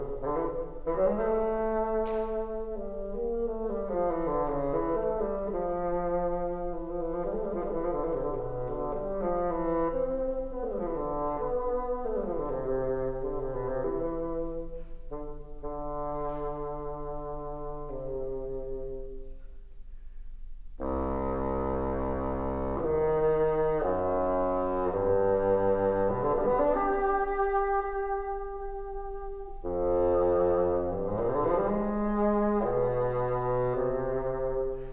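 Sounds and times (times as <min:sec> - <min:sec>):
flute fantasia: 0:00.0 - 0:19.9, 0:20.6 - 0:34.9.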